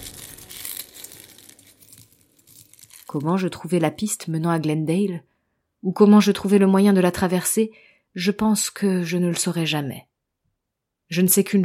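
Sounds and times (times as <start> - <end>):
bones being crushed: 0.0 - 3.2
speech: 3.1 - 10.1, 11.1 - 11.6.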